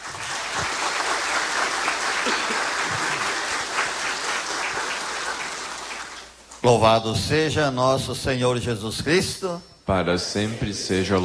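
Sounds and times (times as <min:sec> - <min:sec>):
audience applause: 0:00.0 - 0:06.4
speech: 0:06.6 - 0:11.2.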